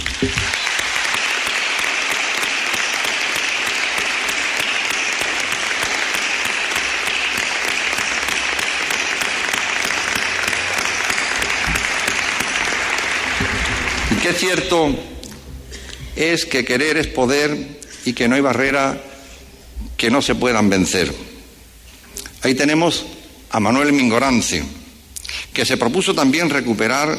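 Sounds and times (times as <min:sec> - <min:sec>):
audience applause: 0:00.0 - 0:14.7
speech: 0:00.2 - 0:00.6, 0:14.3 - 0:15.1, 0:16.2 - 0:19.1, 0:20.0 - 0:21.3, 0:22.4 - 0:24.8, 0:25.6 - 0:27.1.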